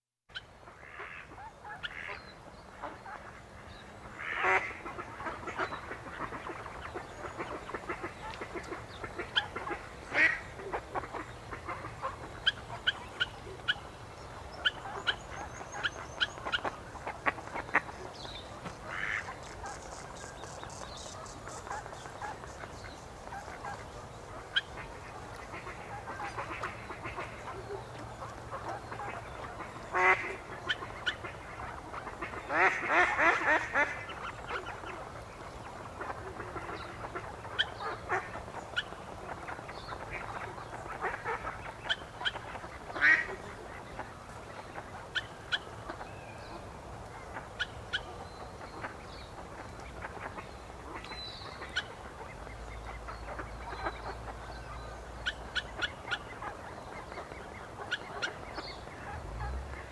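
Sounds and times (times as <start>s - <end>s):
ducks: 0.3s - 59.9s
swans: 0.3s - 59.9s.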